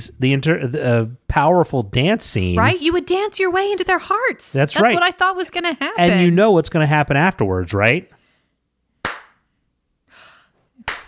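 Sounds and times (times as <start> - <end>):
speech: 0.0 - 8.2
slow hand claps: 9.0 - 9.5, 10.8 - 11.0.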